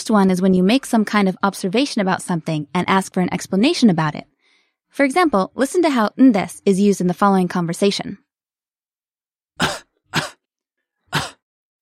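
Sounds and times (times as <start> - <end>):
speech: 0.0 - 4.3, 4.9 - 8.2
person with a cold coughing: 9.6 - 10.5, 11.1 - 11.4.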